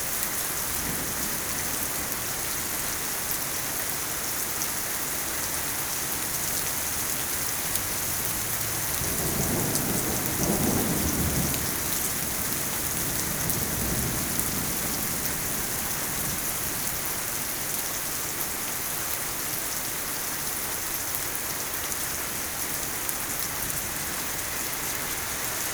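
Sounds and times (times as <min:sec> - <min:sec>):
rain: 0:00.0 - 0:25.7
thunder: 0:08.6 - 0:16.5.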